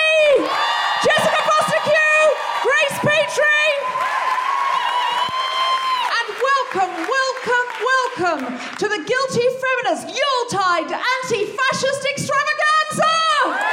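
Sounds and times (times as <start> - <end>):
crowd cheering with high whoops and yells: 0.0 - 7.1, 13.3 - 13.7
crowd clapping: 0.3 - 9.1, 13.5 - 13.7
speech: 8.4 - 13.6.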